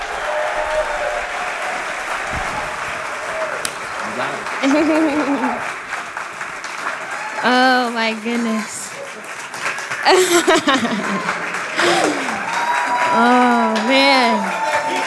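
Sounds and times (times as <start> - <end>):
church audience applauding a speaker coming to the stage: 0.0 - 15.0
laughter: 2.2 - 5.9, 8.7 - 15.0
speech: 4.2 - 5.7, 7.4 - 8.8, 10.0 - 12.2, 13.1 - 14.6.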